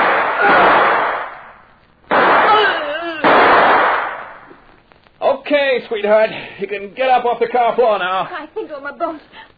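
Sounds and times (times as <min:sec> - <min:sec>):
.38 gunshots in a radio drama: 0:00.0 - 0:04.5
raised voice in a radio drama: 0:02.4 - 0:03.3
speech: 0:05.5 - 0:09.4.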